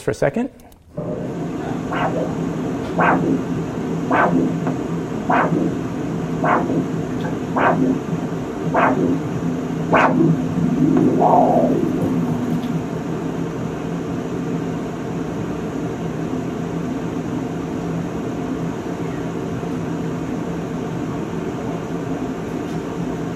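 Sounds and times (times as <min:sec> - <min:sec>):
constant low hum and hiss: 0:00.0 - 0:23.3
whooshing arterial pulse at the ankle: 0:01.0 - 0:13.5.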